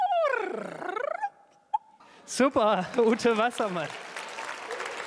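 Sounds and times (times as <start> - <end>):
human voice imitating bird twittering: 0.1 - 2.0
speech: 2.3 - 4.1.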